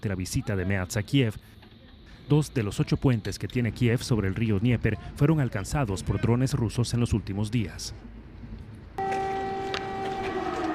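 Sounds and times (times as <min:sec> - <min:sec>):
speech: 0:00.0 - 0:01.6, 0:02.3 - 0:08.2
air raid siren wailing in Kyiv: 0:09.0 - 0:10.7.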